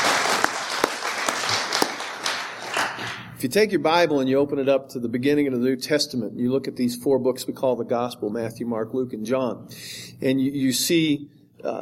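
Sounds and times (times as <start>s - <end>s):
audience clapping: 0.0s - 3.3s
speech: 3.4s - 11.8s.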